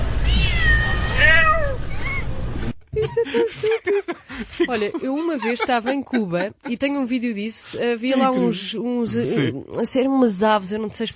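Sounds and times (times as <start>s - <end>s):
cat meowing in response to a person imitating a meow: 0.2s - 1.8s
laughter: 2.9s - 8.6s
speech: 3.4s - 11.1s.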